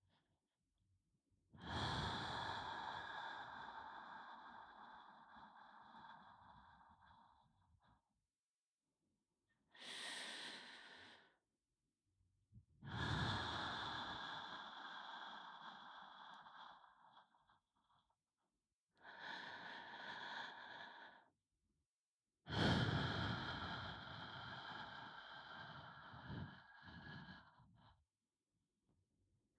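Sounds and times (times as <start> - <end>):
binaural ASMR breathing in the right ear: 1.6 - 8.1, 9.7 - 11.5, 12.8 - 18.2, 18.9 - 21.4, 22.5 - 28.2.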